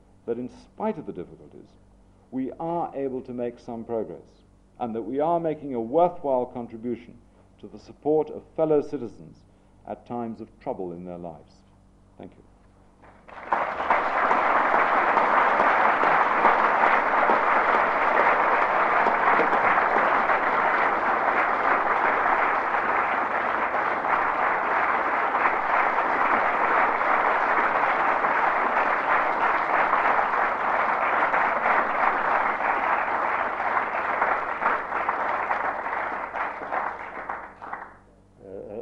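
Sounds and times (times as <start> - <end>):
speech: 0.3 - 11.6, 12.2 - 12.4
audience applause after a lecture: 13.0 - 38.0.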